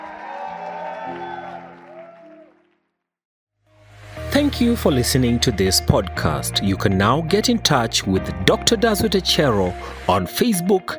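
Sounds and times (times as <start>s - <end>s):
congregation clapping: 0.0s - 2.9s
speech: 4.4s - 10.9s.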